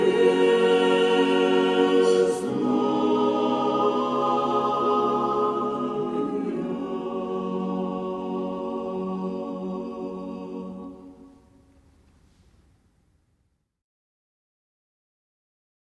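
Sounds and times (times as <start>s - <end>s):
church choir singing a hymn: 0.0s - 11.8s.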